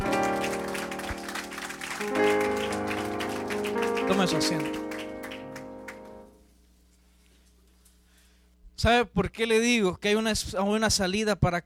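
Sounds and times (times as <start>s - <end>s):
audience applause: 0.0s - 6.3s
speech: 4.1s - 4.8s, 8.8s - 11.6s.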